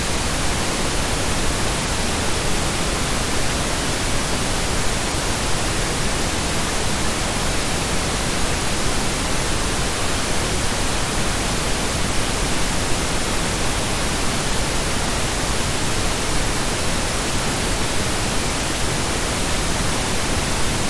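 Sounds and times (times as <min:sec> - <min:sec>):
pink noise: 0:00.0 - 0:20.8.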